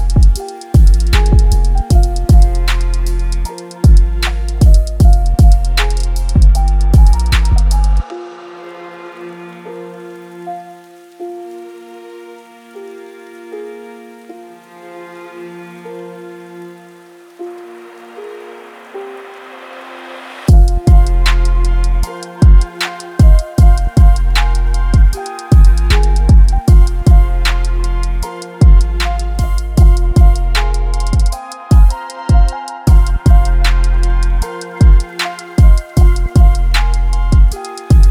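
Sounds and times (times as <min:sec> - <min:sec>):
angry sad trap beat in F minor: 0:00.0 - 0:08.1, 0:20.5 - 0:38.0.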